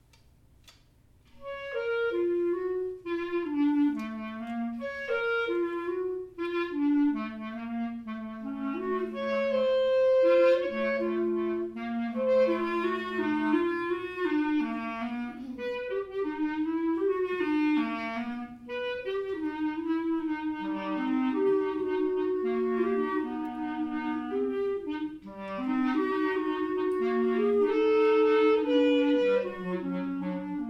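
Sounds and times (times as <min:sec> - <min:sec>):
two clarinets playing at a recital: 0:01.4 - 0:30.6.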